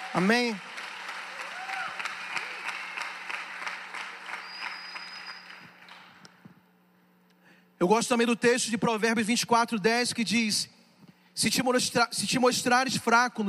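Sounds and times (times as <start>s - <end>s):
loud applause: 0.0s - 6.2s
speech: 0.1s - 0.7s, 7.8s - 10.8s, 11.4s - 13.4s.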